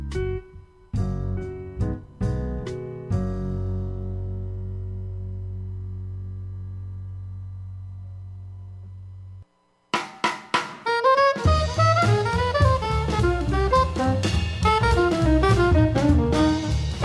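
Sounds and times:
jazz music: 0.0 - 6.1, 10.2 - 17.0.

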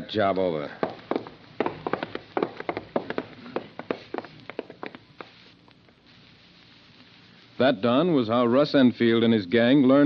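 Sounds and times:
speech: 0.1 - 0.8, 7.6 - 10.0
footsteps walking back to a safe: 0.6 - 5.6.

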